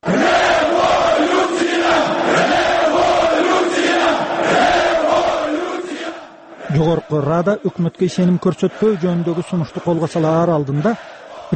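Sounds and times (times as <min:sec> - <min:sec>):
thousands of demonstrators chanting outside the Ukrainian parliament: 0:00.0 - 0:11.5
speech: 0:06.8 - 0:11.5.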